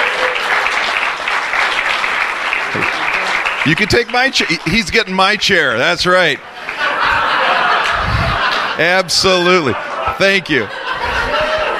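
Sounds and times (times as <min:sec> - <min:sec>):
audience applause: 0:00.0 - 0:08.8
laughter: 0:02.6 - 0:11.7
speech: 0:03.7 - 0:06.5, 0:08.8 - 0:10.8.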